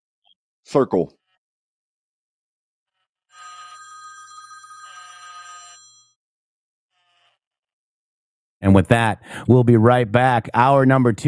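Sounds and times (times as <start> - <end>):
speech: 0.7 - 1.2, 8.6 - 11.2
telephone ringing: 3.3 - 6.2.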